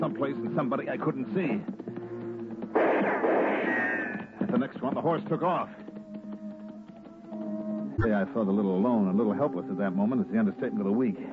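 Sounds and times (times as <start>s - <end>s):
speech: 0.0s - 1.8s, 4.5s - 5.9s, 8.0s - 11.3s
single loud gunshot: 2.7s - 4.3s.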